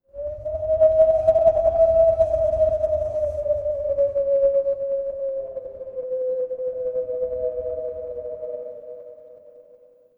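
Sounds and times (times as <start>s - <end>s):
wind: 0.0s - 9.9s.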